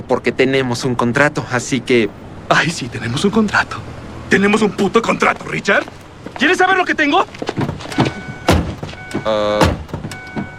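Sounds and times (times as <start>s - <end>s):
speech: 0.0s - 8.0s, 9.2s - 9.8s
car doors opening: 5.7s - 10.5s.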